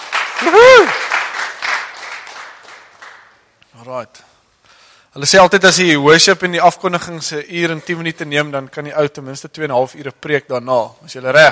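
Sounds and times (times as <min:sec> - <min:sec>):
audience clapping hands: 0:00.0 - 0:03.5
speech: 0:00.4 - 0:01.0, 0:03.9 - 0:04.3, 0:05.2 - 0:11.5.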